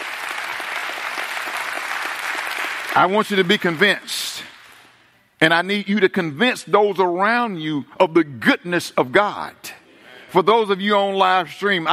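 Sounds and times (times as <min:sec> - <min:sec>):
audience hand clapping: 0:00.0 - 0:05.0
speech: 0:03.0 - 0:04.5, 0:05.4 - 0:11.9.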